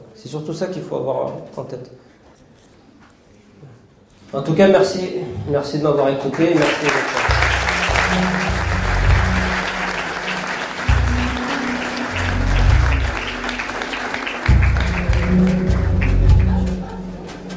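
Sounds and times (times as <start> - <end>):
speech: 0.2 - 2.2, 4.3 - 7.3
audience applauding warmly: 6.2 - 17.5.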